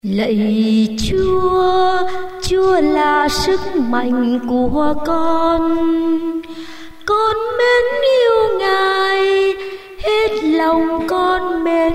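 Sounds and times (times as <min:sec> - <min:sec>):
soprano singing: 0:00.0 - 0:11.9.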